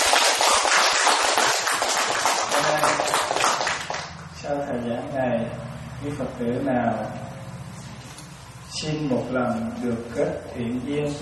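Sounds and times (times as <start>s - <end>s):
audience applause: 0.0s - 4.1s
speech: 4.5s - 7.2s, 8.8s - 11.2s.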